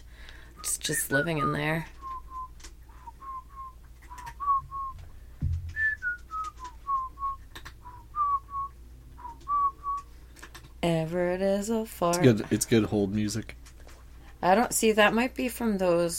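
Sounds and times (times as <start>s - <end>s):
person whistling a tune: 0.6s - 5.0s, 5.7s - 10.1s
speech: 0.8s - 2.0s, 10.8s - 13.6s, 14.4s - 16.1s.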